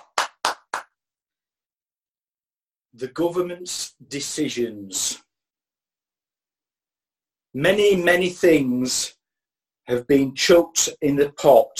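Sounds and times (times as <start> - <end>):
hands clapping: 0.0 - 1.0
speech: 3.0 - 5.3, 7.6 - 9.2, 9.9 - 11.7.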